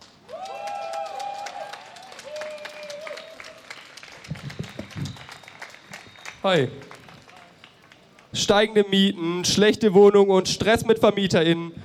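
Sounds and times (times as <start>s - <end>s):
crowd applause at a rally: 0.0s - 8.3s
speech: 6.4s - 6.9s, 8.4s - 11.8s.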